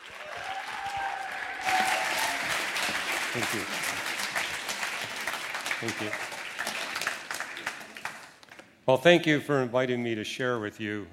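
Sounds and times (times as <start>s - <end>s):
audience applause welcoming a guest speaker at a talk: 0.0s - 8.6s
speech: 3.4s - 3.9s, 5.8s - 6.3s, 8.9s - 11.1s.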